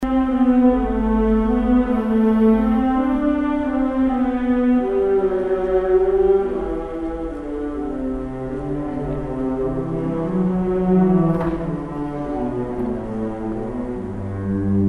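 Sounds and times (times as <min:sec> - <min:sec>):
cello playing a concerto: 0:00.0 - 0:14.8.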